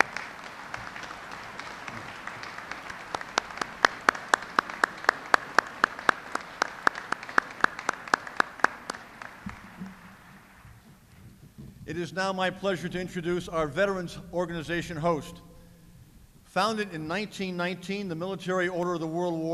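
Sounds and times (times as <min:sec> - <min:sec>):
audience applause: 0:00.0 - 0:10.8
speech: 0:11.9 - 0:15.5, 0:16.5 - 0:19.5.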